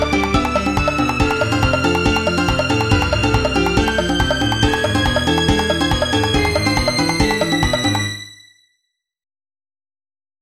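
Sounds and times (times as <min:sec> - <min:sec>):
drums: 0:00.0 - 0:08.1.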